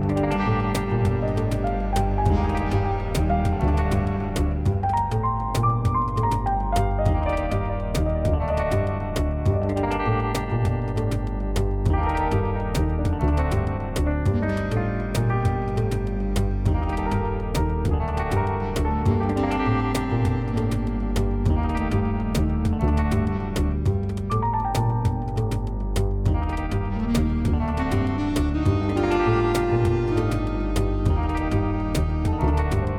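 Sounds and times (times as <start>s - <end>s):
ambient jazz: 0.0s - 32.9s.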